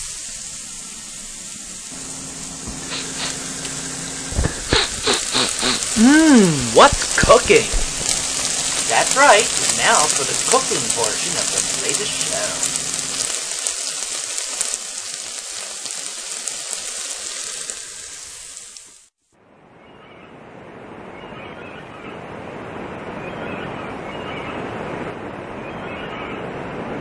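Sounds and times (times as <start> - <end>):
ocean waves rolling onto the shore: 1.9 - 16.2, 19.7 - 27.0
speech: 6.0 - 7.8, 9.0 - 12.7.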